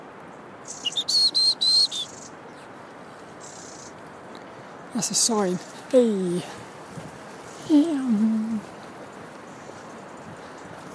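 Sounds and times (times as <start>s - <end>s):
robin calling: 0.6s - 4.0s, 4.9s - 6.7s, 7.4s - 8.8s
speech: 5.0s - 6.6s, 7.7s - 8.4s.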